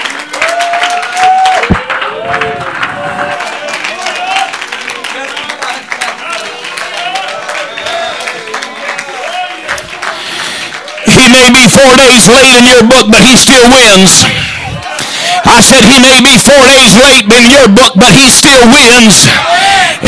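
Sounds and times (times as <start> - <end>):
audience clapping: 0.0 - 14.2
speech: 11.8 - 14.6, 15.6 - 20.0.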